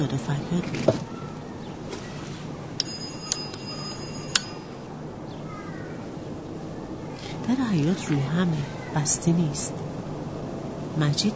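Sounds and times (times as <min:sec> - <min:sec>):
speech: 0:00.0 - 0:01.2, 0:07.5 - 0:10.0, 0:11.0 - 0:11.3
doorbell ringing: 0:02.8 - 0:04.9.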